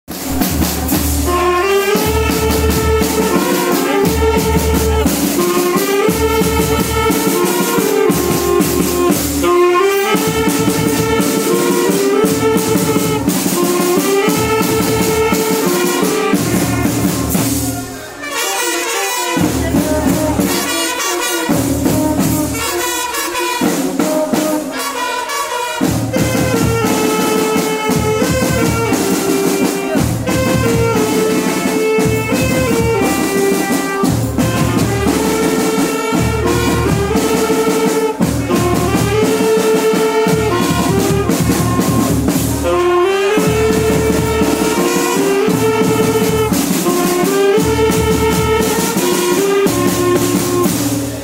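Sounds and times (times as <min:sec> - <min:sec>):
instrumental rocking march: 0:00.1 - 0:51.2.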